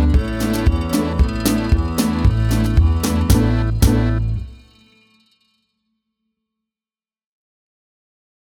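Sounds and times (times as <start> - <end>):
instrumental music: 0.0 - 4.8.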